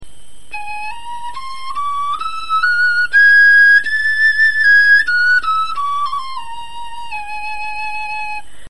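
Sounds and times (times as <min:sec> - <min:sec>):
bone flute playing a scale: 0:00.5 - 0:08.6.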